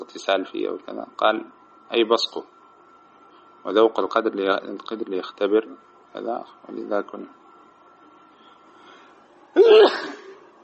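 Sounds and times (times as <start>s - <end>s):
speech: 0.2s - 2.5s, 3.6s - 7.4s
person sneezing: 9.6s - 10.4s.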